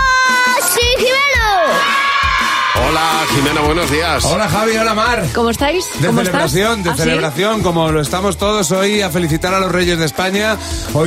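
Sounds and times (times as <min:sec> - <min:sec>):
children shouting and cheering as they arrive: 0:00.0 - 0:03.9
speech: 0:03.4 - 0:11.0
laughter: 0:06.0 - 0:07.6.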